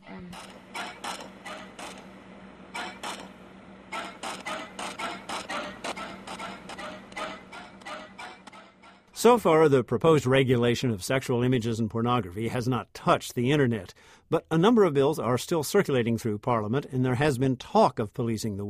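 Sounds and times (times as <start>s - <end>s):
car creaking rhythmically from people having sex: 0.5s - 9.2s
speech: 9.2s - 18.6s.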